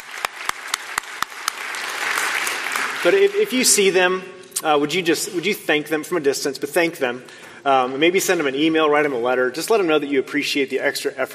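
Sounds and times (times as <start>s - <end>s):
round of applause: 0.0s - 3.9s
speech: 3.0s - 11.3s.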